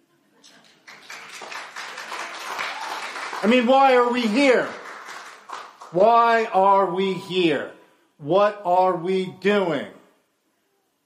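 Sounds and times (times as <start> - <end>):
quiet clapping: 0.4 - 6.0
speech: 3.4 - 4.8, 5.9 - 10.0.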